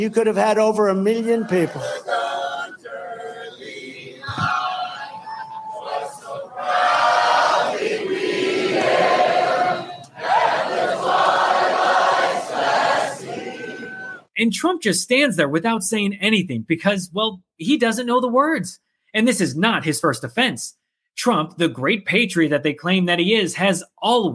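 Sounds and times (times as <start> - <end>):
speech: 0.0 - 2.2, 14.4 - 24.3
rally crowd singing national anthem: 0.9 - 14.2.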